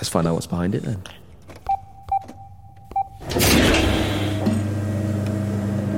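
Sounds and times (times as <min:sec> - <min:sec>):
speech: 0:00.0 - 0:01.2
short electronic beeps: 0:01.6 - 0:03.2
large metal door sliding open with rumble and hum: 0:03.2 - 0:05.8.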